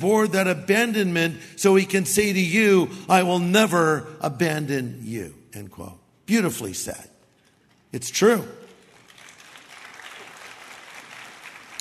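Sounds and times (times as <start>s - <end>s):
speech: 0.0s - 7.1s, 7.9s - 8.6s
tepid audience applause: 8.7s - 11.7s.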